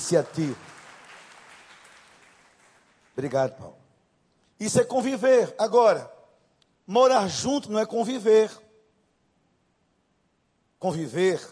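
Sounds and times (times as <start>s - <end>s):
audience clapping: 0.0s - 3.7s
speech: 0.1s - 0.8s, 3.2s - 3.8s, 4.6s - 6.2s, 6.9s - 8.6s, 10.8s - 11.5s.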